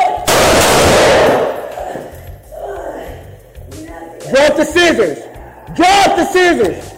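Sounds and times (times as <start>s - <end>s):
burst of gunfire: 0.3s - 1.6s
speech: 4.3s - 6.9s.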